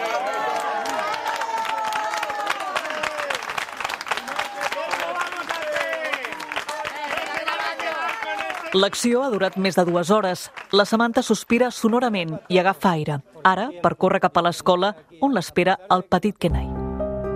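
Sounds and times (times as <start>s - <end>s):
crowd applauding: 0.0s - 12.8s
speech: 8.7s - 16.7s.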